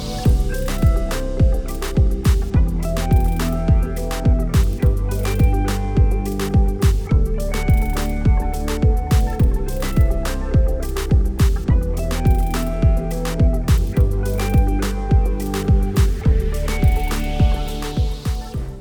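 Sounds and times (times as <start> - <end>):
party pop music: 0.3 - 18.7.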